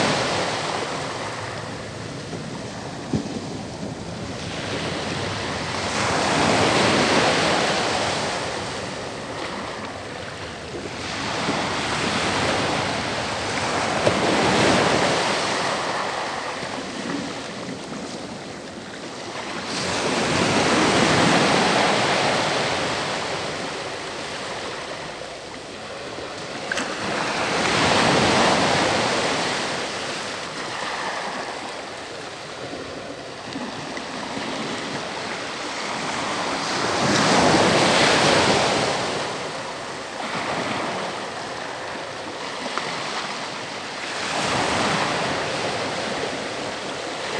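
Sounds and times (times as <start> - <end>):
calm ocean waves: 0.0 - 47.3.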